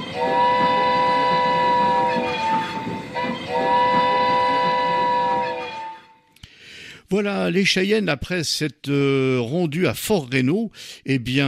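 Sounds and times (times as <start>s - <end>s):
steam train whistle: 0.0s - 6.2s
speech: 7.1s - 11.4s.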